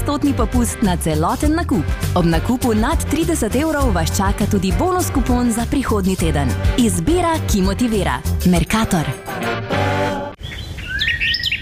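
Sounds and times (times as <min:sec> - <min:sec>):
speech: 0:00.1 - 0:09.9
small birds chirping: 0:10.4 - 0:11.6.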